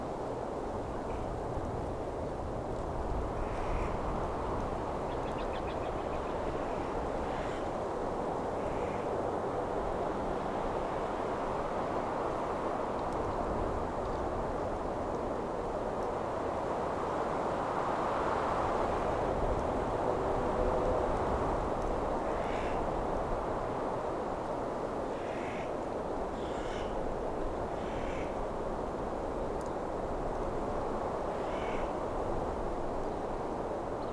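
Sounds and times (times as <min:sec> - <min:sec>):
mountain ambience: 0:00.0 - 0:34.1.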